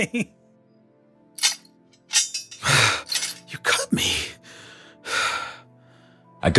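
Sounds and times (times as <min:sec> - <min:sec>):
speech: 0:00.0 - 0:00.4
handcuffs locking on wrists: 0:01.4 - 0:03.7.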